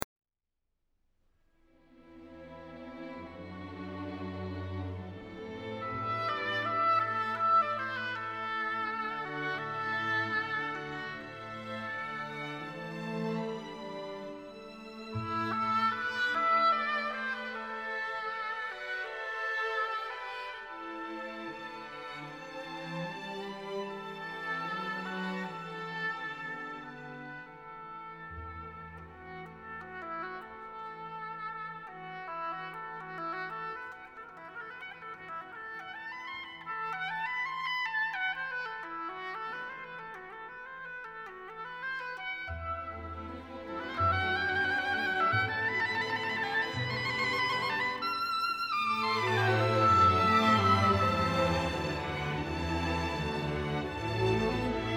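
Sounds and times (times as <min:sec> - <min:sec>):
oboe concerto: 0:02.7 - 0:54.9.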